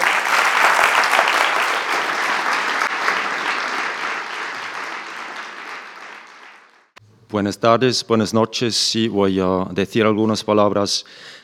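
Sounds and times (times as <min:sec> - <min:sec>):
applause: 0:00.0 - 0:07.0
speech: 0:07.4 - 0:11.3.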